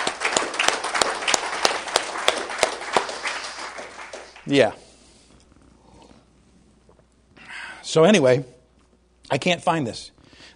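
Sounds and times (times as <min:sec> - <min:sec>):
audience applause: 0:00.0 - 0:04.8
speech: 0:04.5 - 0:04.8, 0:07.9 - 0:08.6, 0:09.3 - 0:10.5.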